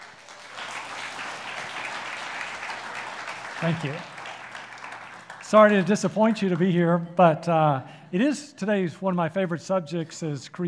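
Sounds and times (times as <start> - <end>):
church congregation applauding to welcome a guest pastor: 0.0 - 6.9
speech: 3.6 - 4.1, 5.5 - 10.6.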